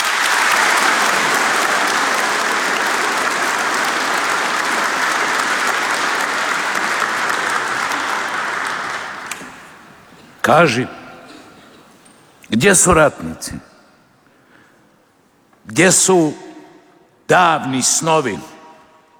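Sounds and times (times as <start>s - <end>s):
audience applauding the Croatian 100th Brigade veterans' association at a commemorative event: 0.0s - 10.8s
speech: 10.5s - 11.0s, 12.5s - 13.7s, 15.7s - 16.5s, 17.3s - 18.5s.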